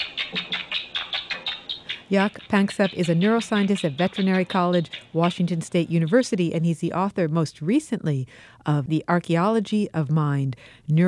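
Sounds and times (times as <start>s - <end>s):
rats chirping during rough-and-tumble play: 0.0s - 7.0s
speech: 2.1s - 11.0s.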